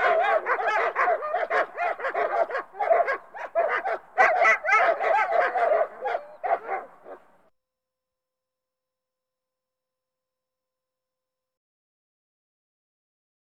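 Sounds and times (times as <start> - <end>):
pack of dogs barking and yelping: 0.0 - 7.4.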